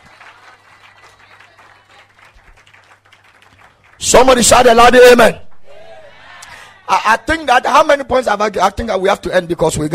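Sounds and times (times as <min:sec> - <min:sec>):
audience clapping hands: 0:00.0 - 0:06.6
speech: 0:04.0 - 0:05.4, 0:06.9 - 0:09.9.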